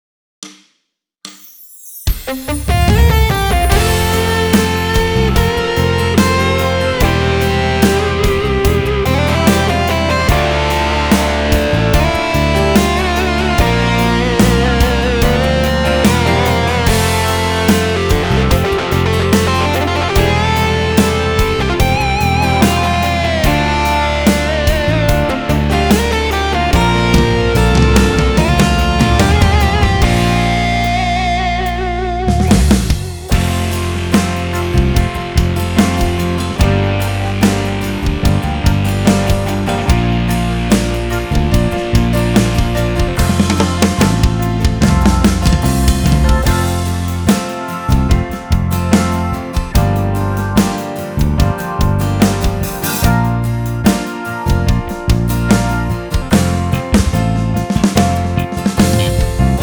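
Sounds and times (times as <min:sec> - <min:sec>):
rock ballad: 0:02.2 - 0:59.6.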